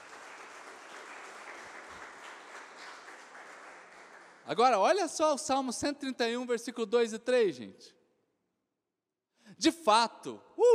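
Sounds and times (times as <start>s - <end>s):
crowd applause: 0.0s - 4.5s
speech: 4.5s - 8.0s, 9.6s - 10.7s.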